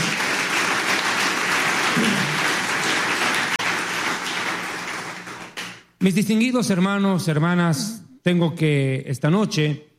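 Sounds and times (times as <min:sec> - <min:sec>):
audience applause: 0:00.0 - 0:05.8
speech: 0:06.0 - 0:09.9.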